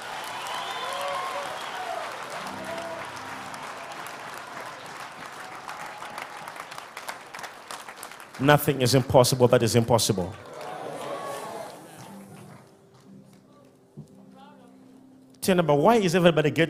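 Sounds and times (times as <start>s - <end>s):
scattered cheering and voices: 0.0s - 7.2s, 10.3s - 12.7s
audience clapping hands: 0.0s - 14.0s
speech: 8.4s - 10.5s, 15.5s - 16.6s.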